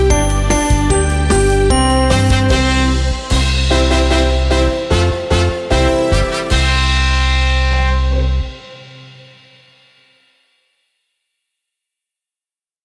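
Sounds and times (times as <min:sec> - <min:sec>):
karaoke singing: 0:00.0 - 0:08.7.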